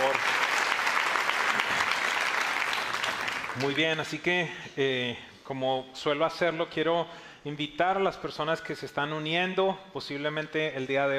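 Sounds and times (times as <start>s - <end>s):
audience applauding: 0.0s - 4.1s
speech: 3.6s - 11.1s.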